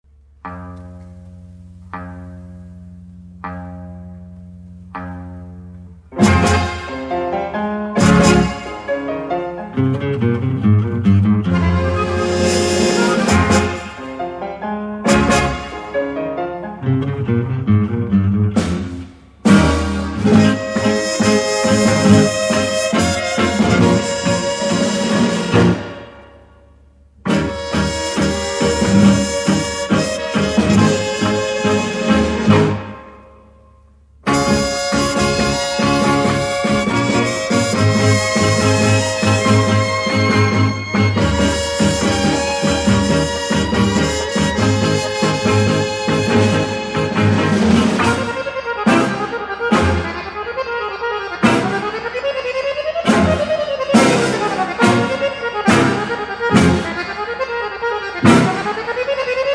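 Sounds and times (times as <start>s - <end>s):
tango music: 0.2s - 59.5s.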